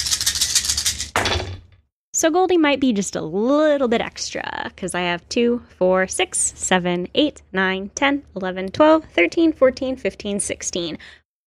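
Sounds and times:
dice rattling: 0.0s - 1.5s
speech: 2.2s - 11.2s.

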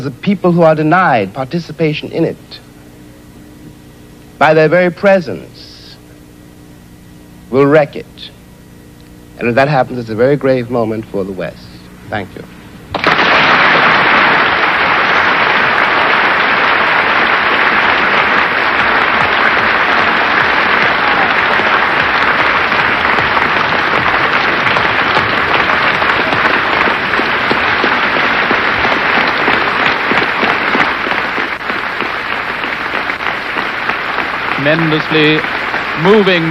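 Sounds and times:
speech: 0.0s - 2.7s, 4.4s - 5.6s, 7.5s - 8.3s, 9.4s - 12.6s, 34.6s - 36.4s
large crowd applauding: 12.9s - 36.4s.

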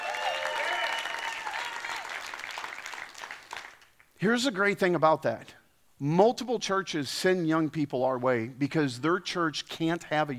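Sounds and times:
cheers: 0.0s - 3.5s
audience clapping: 0.0s - 4.1s
speech: 4.2s - 10.3s.

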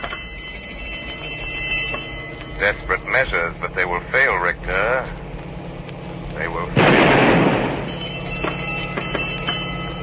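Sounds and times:
rumbling hum: 0.0s - 10.0s
speech: 2.6s - 5.2s, 6.4s - 7.5s
blank warning gunshot: 6.8s - 7.9s.

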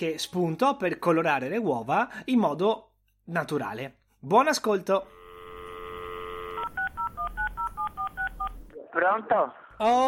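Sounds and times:
speech: 0.0s - 5.2s, 9.0s - 10.0s
telephone dial tone: 5.0s - 8.7s
touch-tone dialing beeps: 5.6s - 8.6s.

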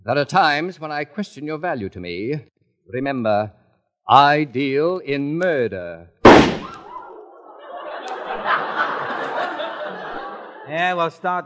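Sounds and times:
speech: 0.0s - 6.2s, 10.7s - 11.4s
door bursting open: 6.2s - 7.0s
voices snickering and chuckling: 6.9s - 11.0s.

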